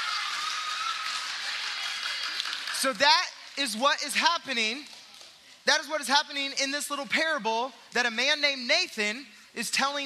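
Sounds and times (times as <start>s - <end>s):
round of applause: 0.0s - 3.2s
speech: 2.8s - 5.0s, 5.6s - 10.0s.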